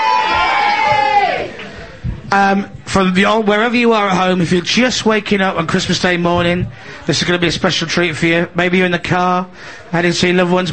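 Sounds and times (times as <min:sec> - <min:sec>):
audience cheering at a live Christmas Day show: 0:00.0 - 0:01.7
speech: 0:02.3 - 0:10.7.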